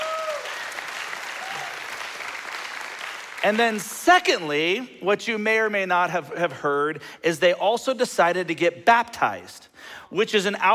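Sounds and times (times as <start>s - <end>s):
audience applause: 0.0s - 3.9s
speech: 3.4s - 10.7s.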